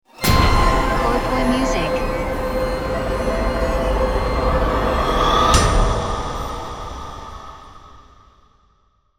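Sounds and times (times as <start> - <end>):
water jingle: 0.1 - 7.3.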